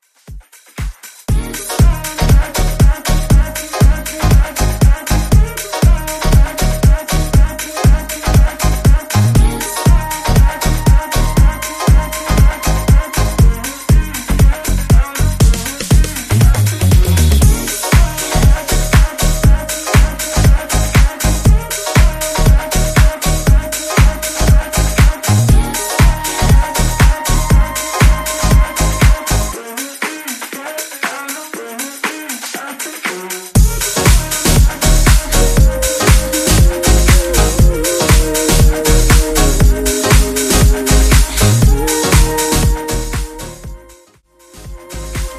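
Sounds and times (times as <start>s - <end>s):
Top 40 pop remix at 119 BPM: 0.3s - 45.3s.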